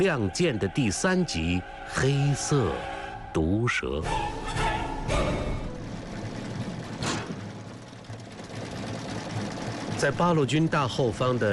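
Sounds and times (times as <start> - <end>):
speech: 0.0 - 4.4, 10.0 - 11.5
several sewing machines whirring and clattering: 5.2 - 11.5.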